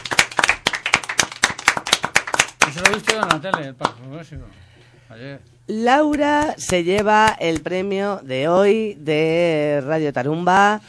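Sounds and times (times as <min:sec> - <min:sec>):
applause from a small group: 0:00.0 - 0:04.0
speech: 0:02.7 - 0:10.8.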